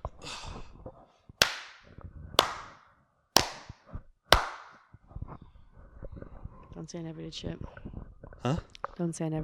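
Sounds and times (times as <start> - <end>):
hand claps for recording sync: 1.4 - 2.8, 3.4 - 4.9
speech: 6.8 - 7.8, 8.4 - 9.4.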